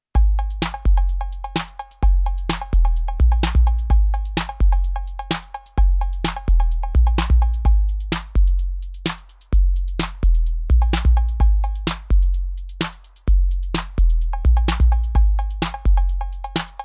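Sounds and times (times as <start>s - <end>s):
Roland TR 8S Chromatic808 clean drum machine: 0.2s - 16.8s.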